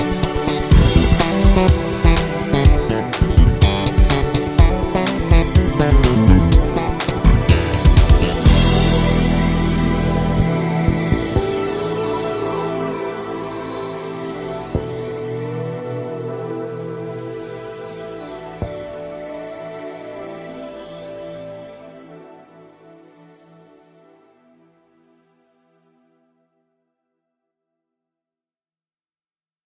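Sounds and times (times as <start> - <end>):
J-Slap bass demo song: 0.0 - 11.9.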